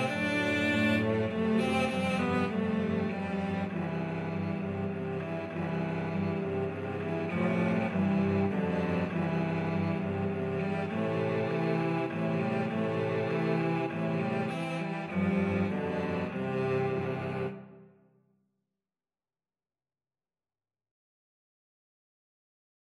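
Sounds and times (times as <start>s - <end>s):
cello quartet: 0.0s - 18.0s.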